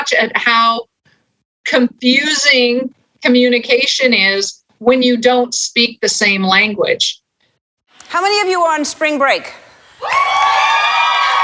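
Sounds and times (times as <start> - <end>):
speech: 0.1 - 0.9, 1.7 - 7.2, 8.0 - 10.7
loud audience applause: 10.0 - 11.4.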